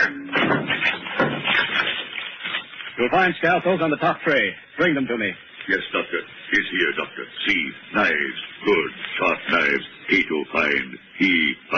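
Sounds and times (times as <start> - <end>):
debris rattling: 0.0 - 3.0
locked tall white cabinet smashed open: 0.2 - 1.8
speech: 3.0 - 11.7.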